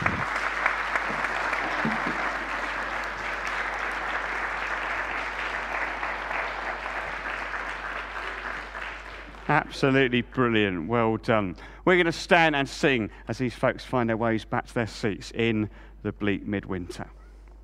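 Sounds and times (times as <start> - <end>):
audience applauding: 0.0 - 10.1
speech: 9.5 - 17.2.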